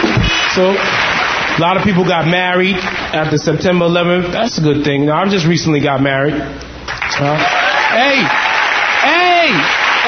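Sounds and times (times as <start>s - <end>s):
audience clapping: 0.0s - 3.2s, 6.9s - 10.0s
speech: 0.6s - 1.0s, 1.6s - 8.5s, 9.5s - 9.8s.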